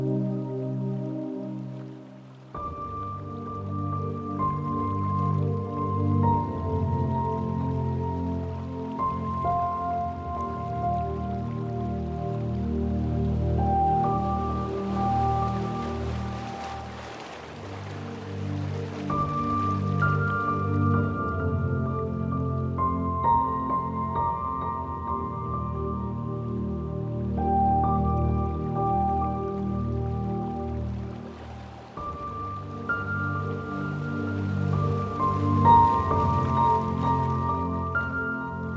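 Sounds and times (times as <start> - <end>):
baby lullaby piano: 0.0 - 38.7
ocean waves: 0.0 - 38.7.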